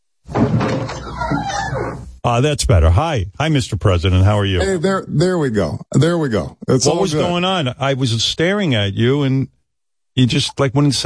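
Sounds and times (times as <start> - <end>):
door being opened: 0.3 - 2.2
speech: 2.2 - 9.6, 10.2 - 11.0.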